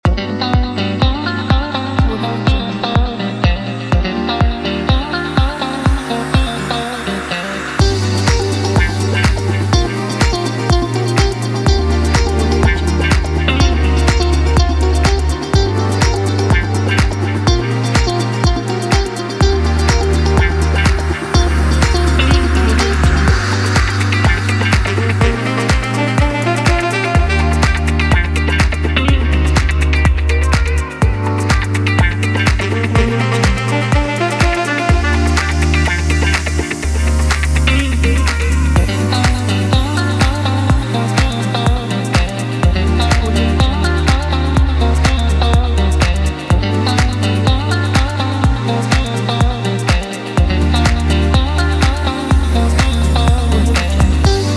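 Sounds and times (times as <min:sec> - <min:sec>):
house music: 0:00.0 - 0:54.5.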